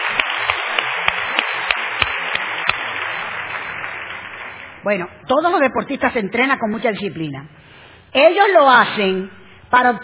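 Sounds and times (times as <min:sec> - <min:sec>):
audience applause: 0:00.0 - 0:04.8
speech: 0:04.8 - 0:10.0.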